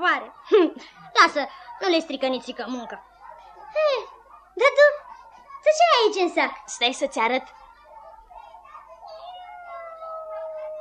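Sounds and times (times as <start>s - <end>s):
speech: 0.0s - 3.1s, 3.7s - 5.0s, 5.6s - 7.6s
cat with one blue eye and one black eye meowing: 9.1s - 10.7s.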